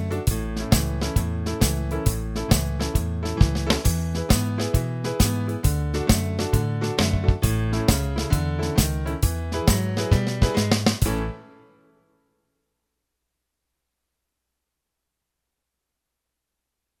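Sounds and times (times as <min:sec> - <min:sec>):
fast blues shuffle in A: 0:00.0 - 0:11.4.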